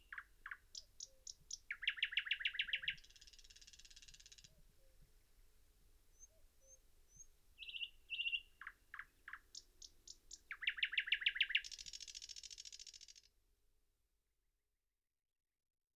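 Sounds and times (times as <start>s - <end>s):
thrush nightingale Luscinia luscinia singing: 0.0s - 5.0s, 6.1s - 13.2s.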